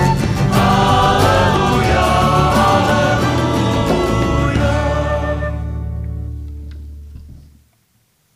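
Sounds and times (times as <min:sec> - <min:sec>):
alleluia singing: 0:00.0 - 0:06.3.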